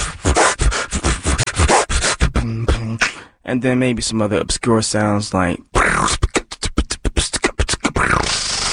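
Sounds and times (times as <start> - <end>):
buzzy tonal vocal scrape: 0.0 - 3.2, 7.2 - 8.7
human beatboxer from the Baltimore area imitating turntable scratching: 0.0 - 3.2, 5.8 - 8.7
speech: 3.5 - 6.2.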